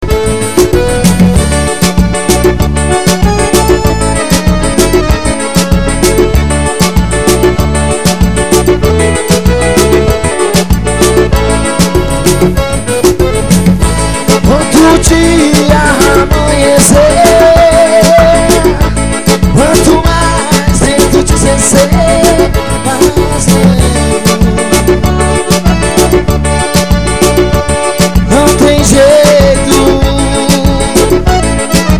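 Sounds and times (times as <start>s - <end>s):
forró music: 0.0s - 31.9s.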